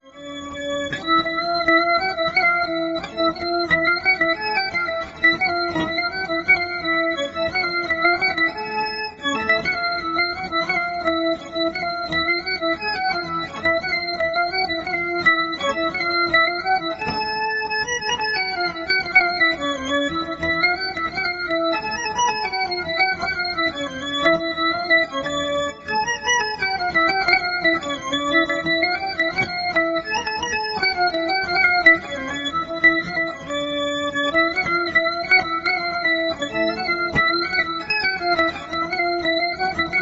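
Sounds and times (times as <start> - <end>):
fiddle playing a mazurka: 0.2 - 40.0.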